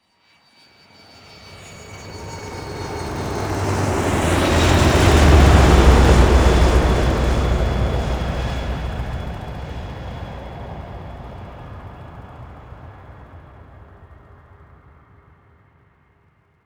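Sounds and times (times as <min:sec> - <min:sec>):
long flyby: 0:01.0 - 0:12.4.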